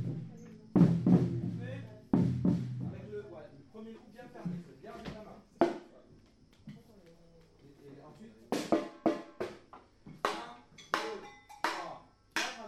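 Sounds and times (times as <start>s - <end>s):
batucada drumming: 0.0s - 3.4s, 8.5s - 12.6s.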